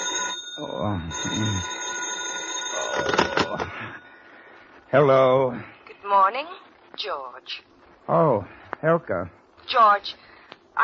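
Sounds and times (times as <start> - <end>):
telephone ringing: 0.0 - 4.3
speech: 0.6 - 1.8, 3.0 - 4.1, 4.9 - 10.8.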